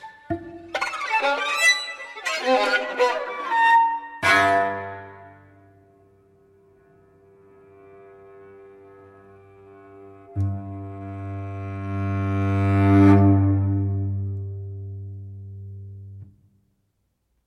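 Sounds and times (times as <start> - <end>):
string quartet: 0.0 - 5.7, 7.4 - 15.3.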